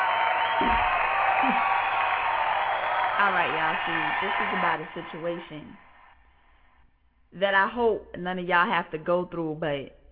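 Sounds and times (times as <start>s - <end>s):
audience applause: 0.0s - 6.2s
speech: 0.6s - 1.8s, 3.2s - 5.8s, 7.3s - 10.0s.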